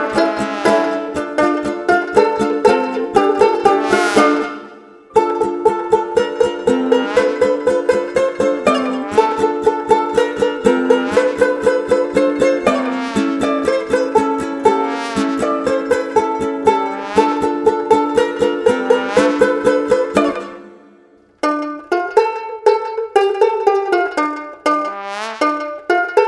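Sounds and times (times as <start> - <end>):
trombone: 0.0 - 5.5, 6.8 - 20.6, 24.7 - 25.9
ukulele: 0.0 - 26.2.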